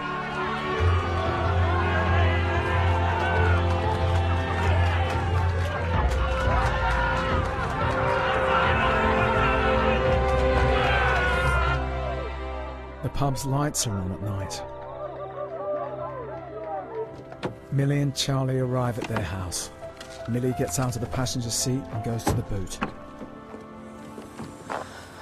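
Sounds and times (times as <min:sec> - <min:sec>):
crowd in a pub cheering and shouting: 0:00.0 - 0:17.3
scattered claps: 0:01.6 - 0:11.8
speech: 0:13.2 - 0:14.7, 0:17.8 - 0:23.0.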